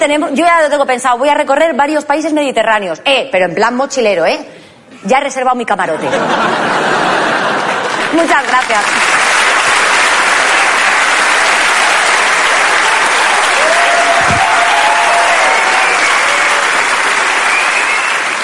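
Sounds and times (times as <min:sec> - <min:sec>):
speech: 0:00.0 - 0:07.2, 0:08.1 - 0:09.2
laughter: 0:06.0 - 0:08.1
audience applause: 0:06.8 - 0:18.4.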